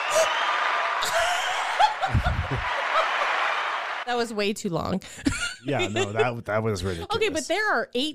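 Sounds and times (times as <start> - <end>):
applause sound effect from button: 0.0 - 4.1
speech: 0.1 - 1.4, 2.1 - 2.8, 4.1 - 8.1
laughter: 0.2 - 3.6, 5.3 - 7.4.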